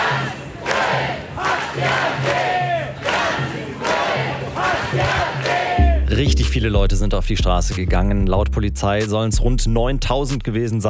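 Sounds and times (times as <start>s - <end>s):
protest crowd of thousands chanting at an anti-AfD demonstration in Cologne: 0.0s - 6.1s
speech: 6.2s - 10.8s.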